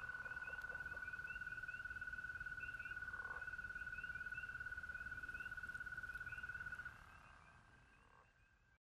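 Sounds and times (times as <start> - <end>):
spring peepers: 0.0 - 8.7
American toads: 0.0 - 8.8.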